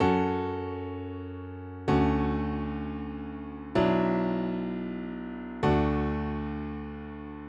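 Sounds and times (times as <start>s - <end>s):
piano: 0.0s - 7.4s.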